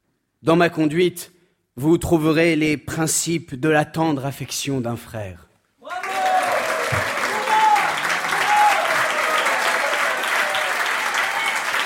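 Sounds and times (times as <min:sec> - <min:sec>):
speech: 0:00.4 - 0:05.5
applause: 0:05.8 - 0:11.8.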